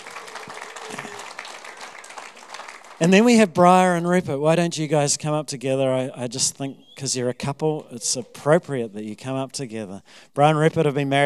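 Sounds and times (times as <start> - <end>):
church congregation applause welcoming a new member: 0.0 - 3.4
speech: 3.0 - 11.2.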